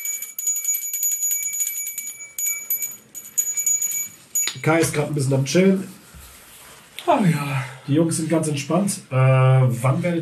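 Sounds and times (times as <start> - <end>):
hand bell ringing: 0.0 - 4.9
speech: 4.6 - 6.0, 7.1 - 10.2.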